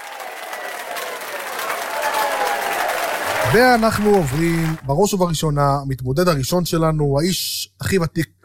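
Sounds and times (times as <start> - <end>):
faint cheering: 0.0 - 4.9
audience applause: 0.0 - 5.0
speech: 3.5 - 8.4.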